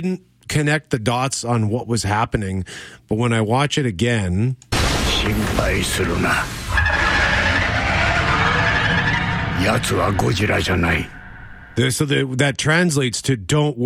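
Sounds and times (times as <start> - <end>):
speech: 0.0 - 6.6, 9.6 - 11.2, 11.8 - 13.8
Rodan monster shrieking sound effect from a film trailer: 5.4 - 11.8.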